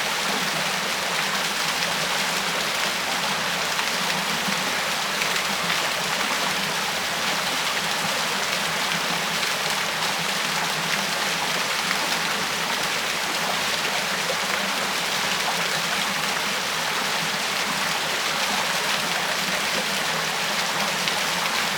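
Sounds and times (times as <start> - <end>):
waterfall in a forest: 0.0 - 21.7.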